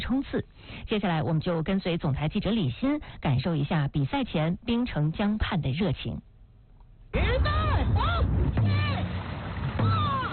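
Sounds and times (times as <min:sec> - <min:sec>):
speech: 0:00.1 - 0:06.3, 0:07.1 - 0:08.7
sharp drum-like hits: 0:07.2 - 0:10.3
dragon boat teams paddling and splashing on the Songhua River in Harbin: 0:07.5 - 0:10.3.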